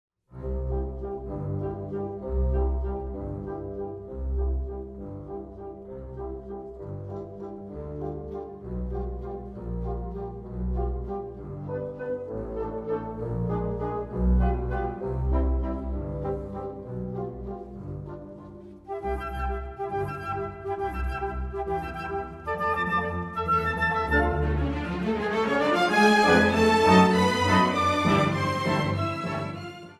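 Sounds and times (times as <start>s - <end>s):
piano: 0.3s - 29.9s.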